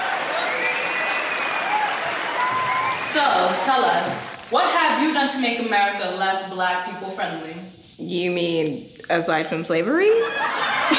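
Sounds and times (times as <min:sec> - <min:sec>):
audience applause: 0:00.0 - 0:04.8
speech: 0:03.2 - 0:10.9
laughter: 0:10.2 - 0:10.9.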